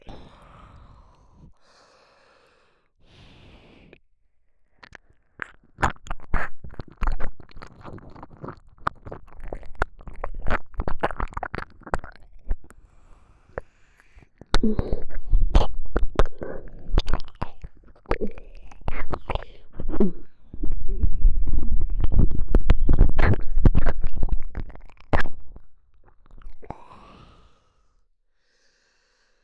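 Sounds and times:
ASMR ear licking in the right ear: 4.8 - 12.8, 13.5 - 27.5.

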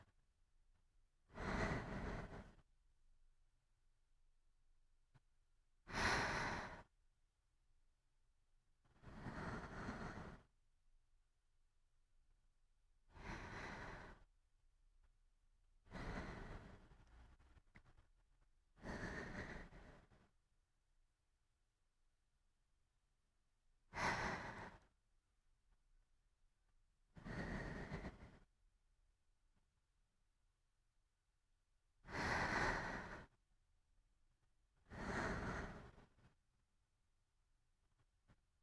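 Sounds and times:
sleeping breath: 1.3 - 2.6, 5.9 - 6.9, 8.9 - 10.5, 13.1 - 14.3, 15.8 - 18.0, 18.8 - 20.3, 23.9 - 24.9, 27.2 - 28.5, 32.1 - 33.4, 34.8 - 36.3.

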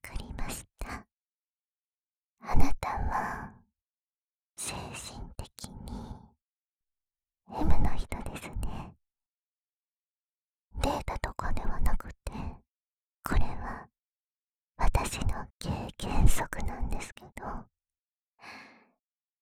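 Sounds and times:
person whispering: 0.0 - 1.1, 4.6 - 6.2, 7.5 - 9.0, 10.8 - 12.6, 13.3 - 13.9, 14.8 - 17.7.

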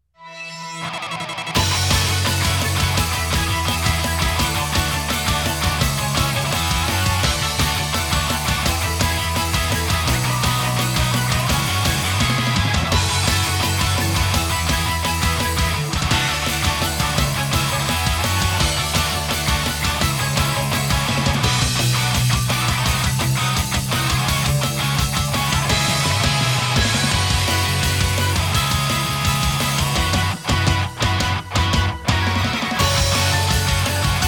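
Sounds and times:
off vocal instrumental music: 0.1 - 34.2.

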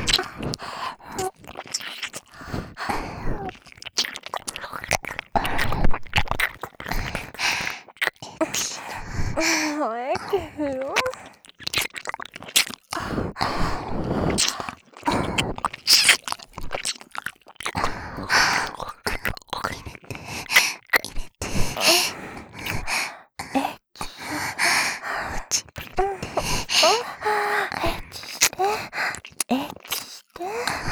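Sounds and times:
ear licking sounds: 0.0 - 30.8
person moaning: 9.4 - 11.1.

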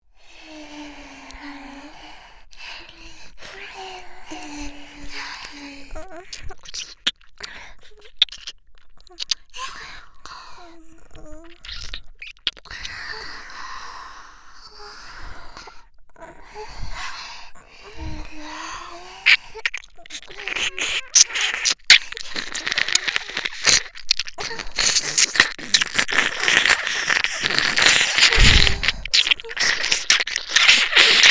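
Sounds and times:
ear licking sounds on left and right: 2.4 - 13.4, 16.5 - 31.2.

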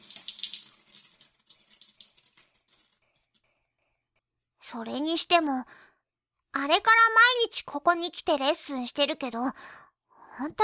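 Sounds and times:
shower water running: 0.0 - 3.4
speech: 4.7 - 5.9, 6.6 - 9.8, 10.4 - 10.6.

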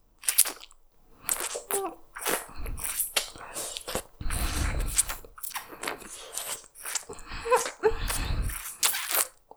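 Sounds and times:
wet slurping: 0.2 - 9.5
heavy breathing into ear: 2.3 - 5.2, 7.2 - 8.8.

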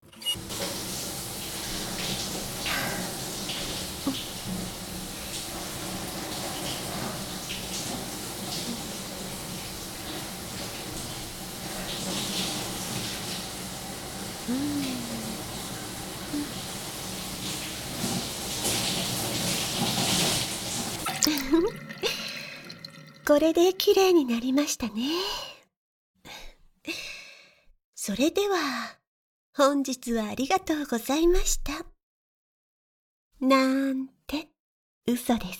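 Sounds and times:
water running to rinse someone off: 0.4 - 25.2
speech: 23.3 - 25.4, 28.1 - 29.0, 29.6 - 31.9, 33.4 - 34.5, 35.1 - 35.5.

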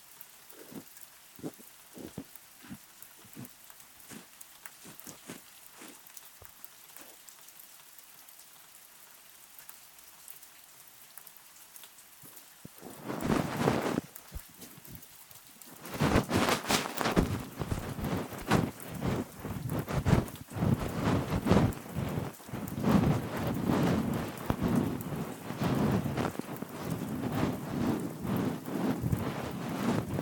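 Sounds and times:
rain: 0.0 - 30.1
ear massage sounds: 0.6 - 6.1, 12.7 - 15.0, 15.8 - 30.1.

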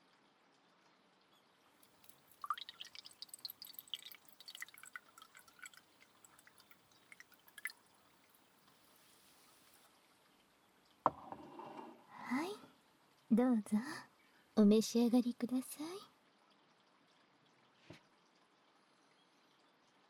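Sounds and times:
blended tea pouring into a cup: 1.8 - 9.8
speech: 13.4 - 15.9.

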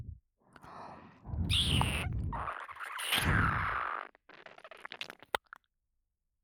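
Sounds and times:
licking both ears: 1.5 - 5.6.

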